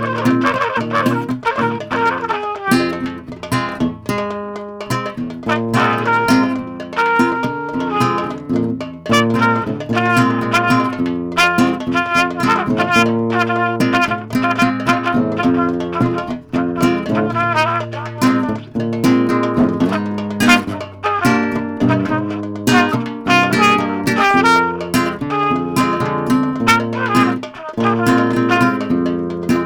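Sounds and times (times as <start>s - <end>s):
guitar: 0.0s - 29.6s
trumpet: 0.0s - 29.6s.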